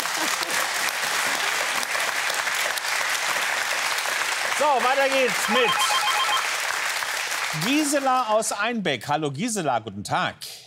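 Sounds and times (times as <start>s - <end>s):
applause: 0.0s - 8.6s
speech: 4.6s - 5.9s, 7.5s - 10.5s.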